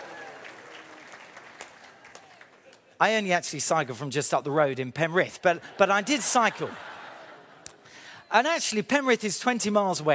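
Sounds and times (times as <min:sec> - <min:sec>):
light scattered applause from an audience: 0:00.0 - 0:03.0
speech: 0:03.0 - 0:06.9, 0:08.3 - 0:10.1
laughter: 0:05.5 - 0:07.8.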